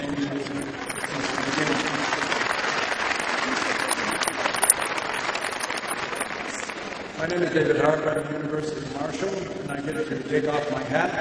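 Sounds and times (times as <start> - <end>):
audience applause: 0.8 - 7.3
speech: 7.2 - 11.1.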